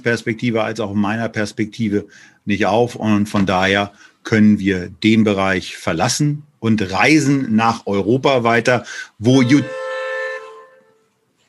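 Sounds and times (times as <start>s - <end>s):
speech: 0.0s - 9.8s
car horn honking outside: 9.3s - 11.0s.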